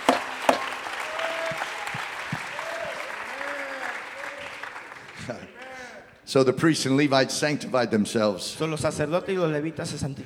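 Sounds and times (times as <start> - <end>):
audience clapping hands in worship: 0.0 - 6.2
speech: 6.3 - 10.2.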